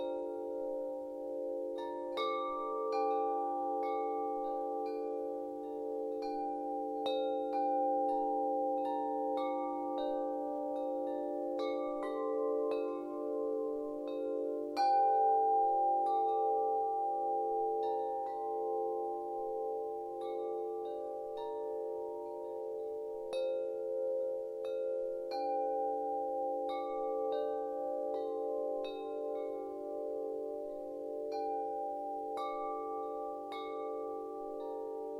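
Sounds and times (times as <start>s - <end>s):
serene wind chimes: 0.0s - 35.1s.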